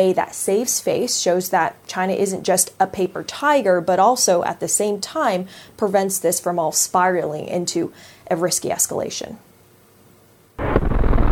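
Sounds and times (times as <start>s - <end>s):
speech: 0.0s - 9.5s
destroyers opening fire: 10.6s - 11.2s
warship missile launch: 10.6s - 11.2s.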